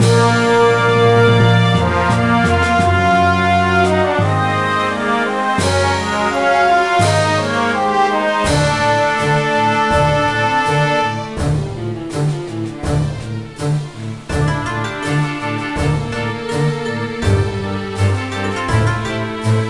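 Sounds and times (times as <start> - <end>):
title background music: 0.0 - 19.6.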